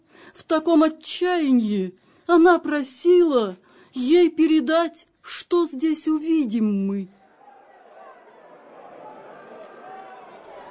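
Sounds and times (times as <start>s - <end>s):
speech: 0.5s - 7.2s
approaching crowd: 7.2s - 10.6s.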